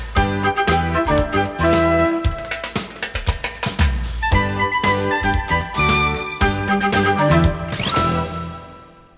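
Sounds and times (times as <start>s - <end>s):
flute battle: 0.2s - 2.7s, 4.2s - 9.1s.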